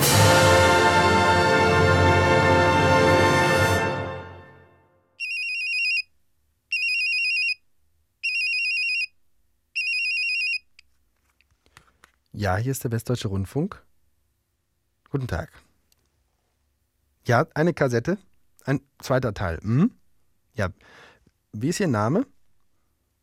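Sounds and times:
sustained rich tone: 0.0 - 5.0
telephone on a radio broadcaster's order line ringing: 5.2 - 6.1, 6.7 - 7.6, 8.2 - 9.1, 9.8 - 10.6
speech: 12.4 - 13.9, 15.1 - 15.7, 17.2 - 20.0, 20.6 - 22.4.

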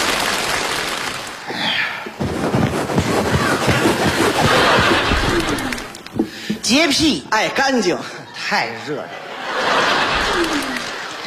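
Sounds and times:
audience applause: 0.0 - 1.5, 3.0 - 6.0, 9.5 - 11.2
laughter: 3.2 - 6.2, 7.4 - 11.2
speech: 6.7 - 9.2.

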